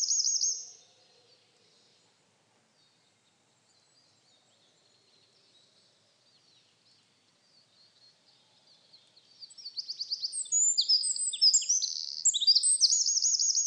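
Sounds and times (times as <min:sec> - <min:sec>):
Eurasian wren Troglodytes troglodytes singing: 0:00.0 - 0:00.8, 0:09.1 - 0:13.6.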